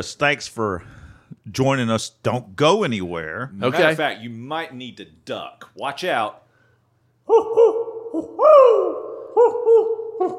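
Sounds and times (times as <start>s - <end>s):
speech: 0.0s - 6.4s, 7.3s - 7.7s
owl hoot sound effect: 7.3s - 10.3s.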